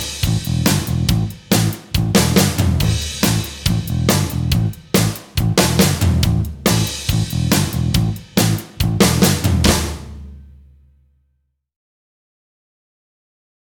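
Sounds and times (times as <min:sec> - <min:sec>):
backing music: 0:00.0 - 0:10.8.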